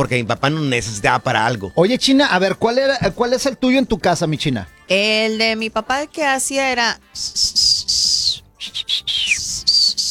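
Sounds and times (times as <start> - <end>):
speech: 0.0 - 8.1
person whistling a summoning call: 7.2 - 10.0.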